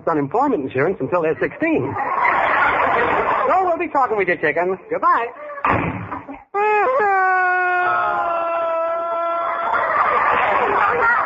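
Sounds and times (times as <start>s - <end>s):
speech: 0.0s - 2.4s, 3.0s - 6.9s
laughter: 1.4s - 3.8s, 5.2s - 11.2s
woman crying and sobbing: 6.4s - 9.5s.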